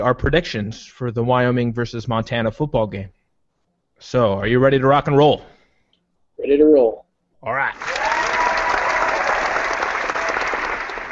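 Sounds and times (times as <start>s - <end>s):
speech: 0.0s - 3.2s, 4.0s - 5.5s, 6.4s - 8.0s
enthusiastic crowd applause: 7.8s - 11.1s.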